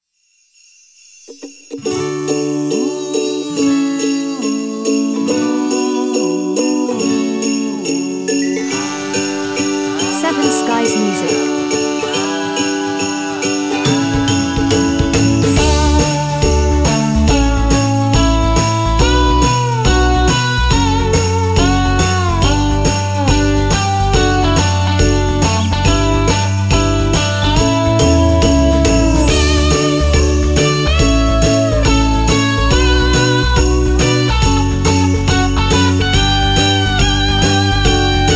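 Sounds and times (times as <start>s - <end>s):
Christmas ukulele music: 1.7s - 38.3s.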